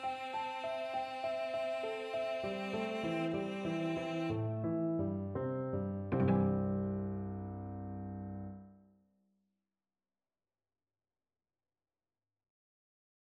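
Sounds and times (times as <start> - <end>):
piano trio: 0.0 - 8.7.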